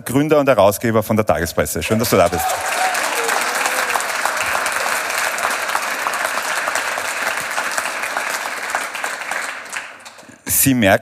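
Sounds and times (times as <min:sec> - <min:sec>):
speech: 0:00.0 - 0:02.8, 0:10.6 - 0:11.0
audience applause: 0:01.9 - 0:10.5.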